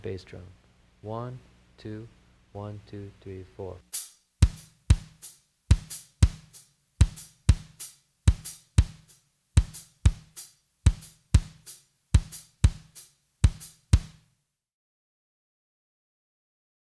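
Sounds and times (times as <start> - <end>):
drum kit playing rumba clave rhythm: 3.9 - 14.3.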